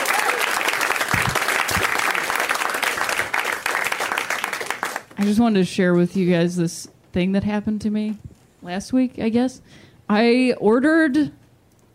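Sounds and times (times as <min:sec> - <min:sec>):
crowd applauding: 0:00.0 - 0:05.4
speech: 0:05.2 - 0:11.4.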